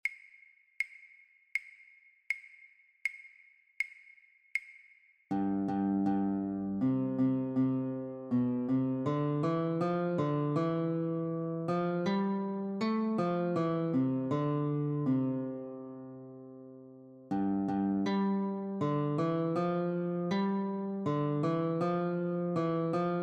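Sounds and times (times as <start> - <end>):
guitar playing a Christmas carol: 5.3 - 23.2.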